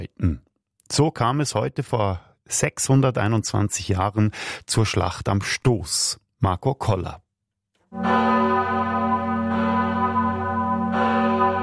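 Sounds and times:
speech: 0:00.2 - 0:07.2, 0:07.9 - 0:08.6
large parish church bell ringing in Appenzell: 0:07.9 - 0:11.6.

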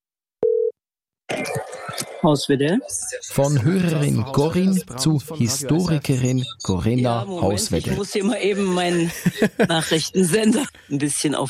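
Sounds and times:
telephone line tone: 0:00.4 - 0:00.8
speech: 0:02.2 - 0:11.4
laughter: 0:08.2 - 0:10.7.

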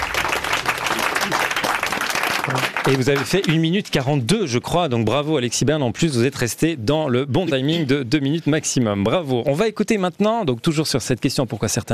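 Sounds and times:
audience applause: 0:00.0 - 0:03.7
speech: 0:02.5 - 0:11.9.

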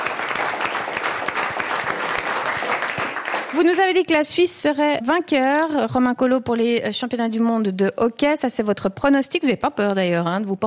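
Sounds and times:
audience applause: 0:00.0 - 0:03.8
speech: 0:03.6 - 0:10.6.

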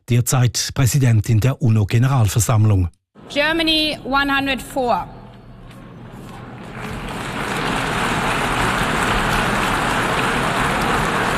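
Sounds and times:
speech: 0:00.1 - 0:05.2
restrained applause: 0:06.4 - 0:11.3.

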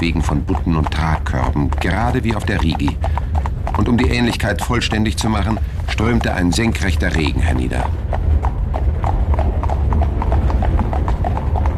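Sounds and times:
speech: 0:00.0 - 0:08.1
carriage wheels rolling: 0:00.0 - 0:11.7
horse hooves clip-clopping pulling a carriage: 0:00.0 - 0:11.7.

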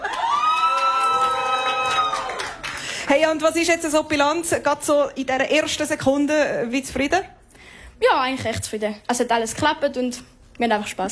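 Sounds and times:
crowd cheering: 0:00.0 - 0:02.9
speech: 0:03.1 - 0:07.4, 0:08.0 - 0:11.1.

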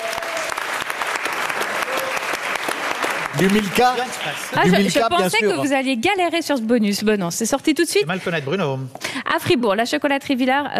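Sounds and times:
audience applause: 0:00.0 - 0:05.5
speech: 0:03.4 - 0:10.7.

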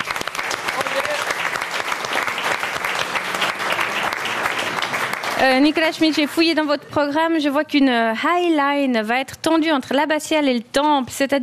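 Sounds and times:
audience applause: 0:00.0 - 0:06.6
speech: 0:05.4 - 0:11.4.

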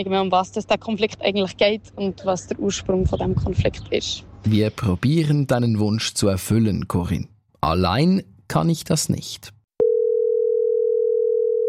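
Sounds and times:
speech: 0:00.0 - 0:09.6
telephone dial tone of outgoing call: 0:09.8 - 0:11.6.

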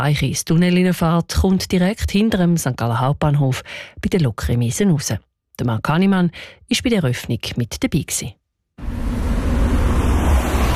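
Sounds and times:
speech: 0:00.0 - 0:08.4
road traffic at the Kreuzbleiche intersection in St. Gallen: 0:08.8 - 0:10.7.

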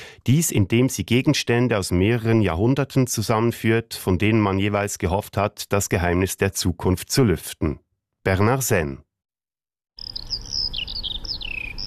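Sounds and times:
speech: 0:00.2 - 0:09.1
Eurasian skylark song: 0:10.0 - 0:11.8.

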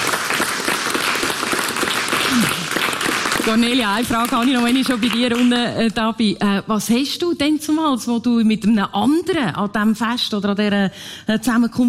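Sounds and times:
audience applause: 0:00.0 - 0:05.6
speech: 0:03.4 - 0:11.8.

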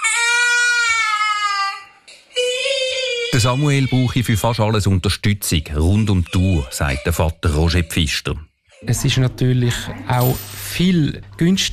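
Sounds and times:
autistic child screaming: 0:00.0 - 0:04.1, 0:06.3 - 0:07.9
speech: 0:03.3 - 0:11.7.

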